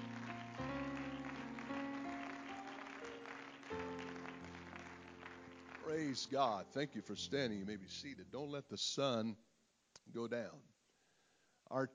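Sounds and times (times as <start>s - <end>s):
audience clapping: 0.0s - 7.1s
organ or keyboard chords: 0.0s - 8.2s
speech: 5.9s - 9.5s, 10.1s - 10.7s, 11.7s - 11.9s.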